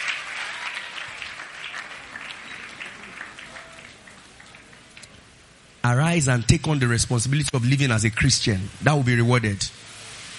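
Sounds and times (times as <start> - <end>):
crowd applauding: 0.0 - 5.2
speech: 5.9 - 9.8.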